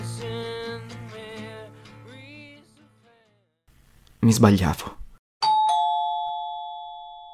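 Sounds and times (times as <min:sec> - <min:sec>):
speech: 0:04.3 - 0:05.0
doorbell two-note ding-dong at the door: 0:05.4 - 0:07.3.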